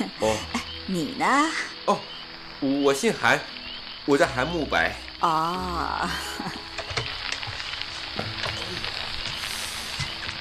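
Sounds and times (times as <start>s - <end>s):
speech: 0.0s - 6.6s
heavy rain pouring: 0.0s - 10.4s.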